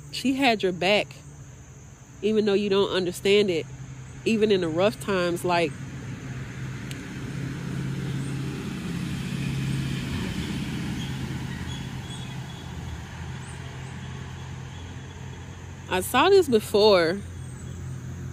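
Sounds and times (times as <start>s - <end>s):
speech: 0.1s - 1.2s, 2.2s - 5.8s, 15.9s - 17.3s
car driving past on an outdoor street: 5.7s - 18.3s.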